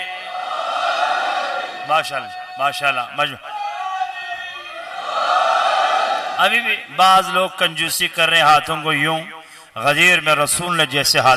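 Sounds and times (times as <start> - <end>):
crowd at a religious gathering shouting in response to a chant: 0.0 - 2.6, 3.4 - 6.5
speech: 1.9 - 3.5, 6.4 - 11.3.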